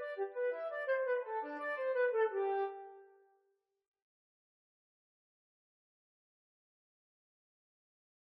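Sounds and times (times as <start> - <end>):
flute duet at Grade 7 exam speed: 0.0 - 3.2.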